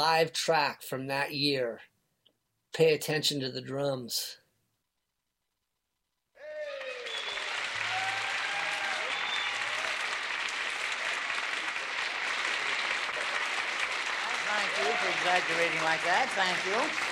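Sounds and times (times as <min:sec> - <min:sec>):
speech: 0:00.0 - 0:01.9, 0:02.7 - 0:04.4, 0:15.0 - 0:17.1
audience applause at live concert: 0:06.4 - 0:17.1.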